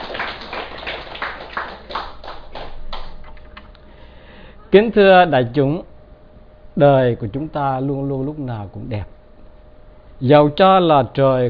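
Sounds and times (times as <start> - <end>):
audience applause: 0.0 - 3.3
speech: 4.7 - 5.9, 6.8 - 9.2, 10.2 - 11.4.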